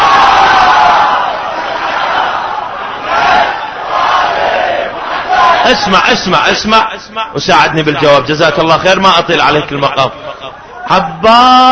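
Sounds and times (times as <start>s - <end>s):
crowd loudly chanting salawat in unison toward the shrine of Abbas: 0.0s - 5.9s
speech: 5.7s - 10.2s, 10.9s - 11.7s.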